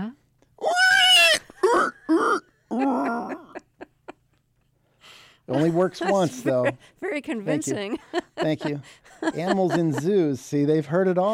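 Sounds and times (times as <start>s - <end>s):
person imitating pig squeals, grunts and snorts: 0.6s - 3.6s
laughter: 2.1s - 4.4s, 5.5s - 10.4s
speech: 5.6s - 11.3s.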